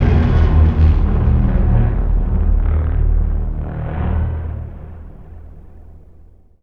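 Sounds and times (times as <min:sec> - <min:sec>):
horn: 0:00.0 - 0:04.8.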